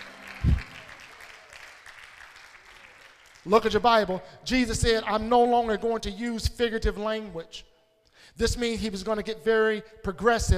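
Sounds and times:
audience clapping hands: 0.0s - 3.9s
speech: 3.4s - 10.5s.

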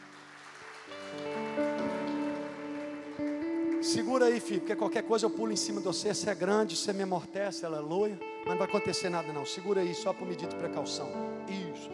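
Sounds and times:
audience applause: 0.0s - 4.6s
sustained rising keyboard chords: 0.0s - 11.9s
speech: 3.9s - 11.9s.

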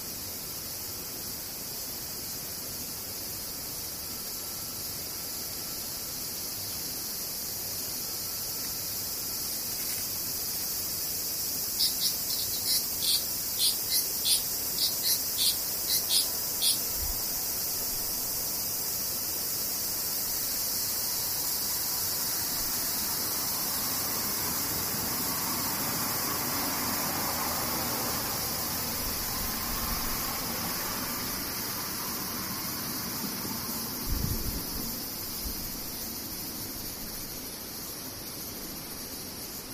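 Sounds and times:
cicadas droning: 0.0s - 39.7s
quick regular chirping pulses: 11.6s - 17.3s.

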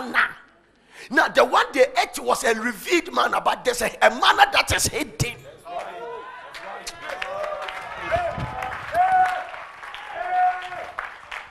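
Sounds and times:
speech: 1.1s - 5.3s
audience clapping: 5.8s - 11.4s.

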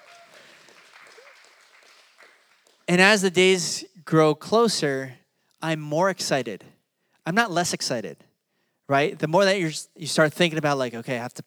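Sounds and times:
audience applause: 0.0s - 3.2s
speech: 2.9s - 8.2s, 8.9s - 11.4s.

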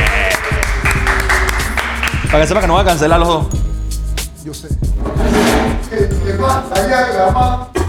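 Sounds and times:
applause: 0.0s - 2.5s
speech: 2.3s - 3.6s, 4.4s - 7.7s.

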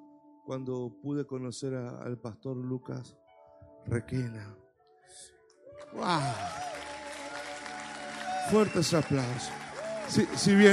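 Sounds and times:
speech: 0.5s - 3.2s, 3.8s - 6.7s, 8.5s - 10.7s
audience applause: 5.8s - 10.7s.

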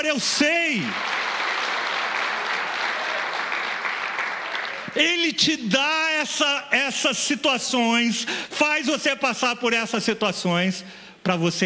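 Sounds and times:
speech: 0.0s - 1.2s, 5.0s - 11.6s
crowd applause: 0.8s - 5.0s.

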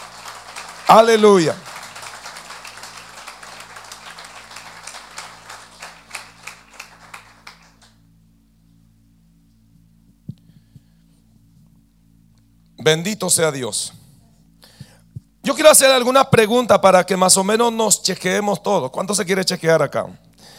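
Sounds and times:
audience applause: 0.0s - 8.0s
speech: 0.9s - 1.6s, 12.9s - 14.0s, 15.6s - 20.5s.

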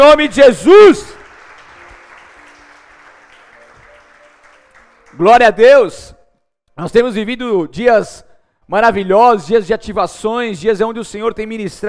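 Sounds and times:
speech: 0.1s - 1.2s, 5.2s - 6.2s, 6.8s - 11.8s
audience applauding: 0.9s - 5.6s.

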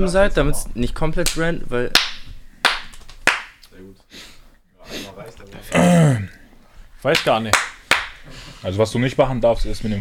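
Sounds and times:
speech: 0.0s - 2.1s, 7.0s - 7.7s, 8.6s - 10.0s
hand claps to sync recordings: 1.2s - 3.7s, 7.1s - 8.2s.

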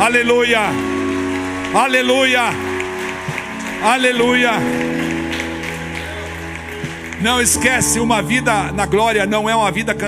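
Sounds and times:
speech: 0.0s - 1.1s, 1.7s - 2.7s, 3.8s - 5.0s, 7.2s - 10.0s
audience applauding: 0.0s - 8.6s.

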